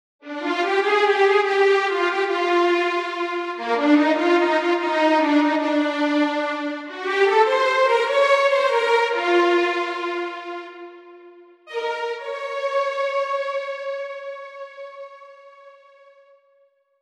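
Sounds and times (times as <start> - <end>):
violin playing legato on the G string: 0.2 - 15.8.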